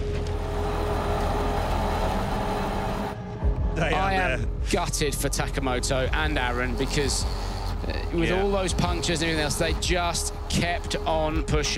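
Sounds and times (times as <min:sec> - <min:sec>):
damaged rally car engine note: 0:00.0 - 0:03.6, 0:04.7 - 0:11.7
speech: 0:03.8 - 0:11.7.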